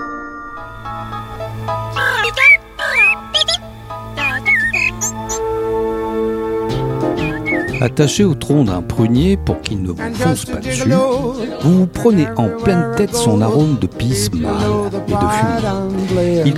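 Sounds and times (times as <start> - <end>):
musical backing of sustained tones: 1.0 - 8.0
fox yapping and baby-like crying: 2.0 - 5.4, 7.2 - 7.9
speech: 7.8 - 16.5.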